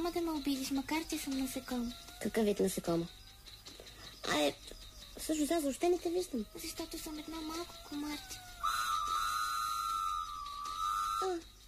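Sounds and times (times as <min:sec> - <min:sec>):
speech: 0:00.0 - 0:03.2, 0:04.3 - 0:08.4, 0:11.2 - 0:11.5
locomotive whistle: 0:06.6 - 0:11.6.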